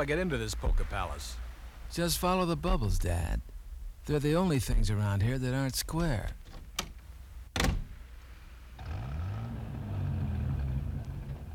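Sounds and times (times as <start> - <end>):
speech: 0.0 - 6.5
car engine running: 8.8 - 11.5.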